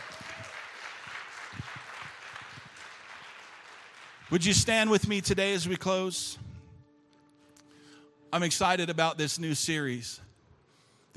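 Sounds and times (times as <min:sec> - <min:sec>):
audience applause: 0:00.0 - 0:05.0
speech: 0:04.3 - 0:06.4, 0:08.3 - 0:10.3.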